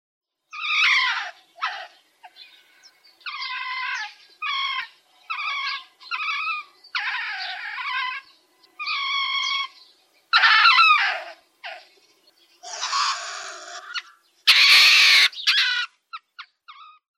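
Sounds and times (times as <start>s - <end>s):
pine marten wailing calls: 0.5s - 2.4s, 3.2s - 11.9s, 12.6s - 17.1s.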